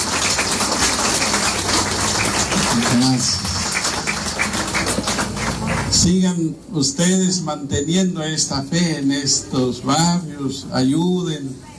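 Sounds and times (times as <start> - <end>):
audience applause: 0.0 - 6.1
speech: 3.0 - 3.4, 6.0 - 11.7.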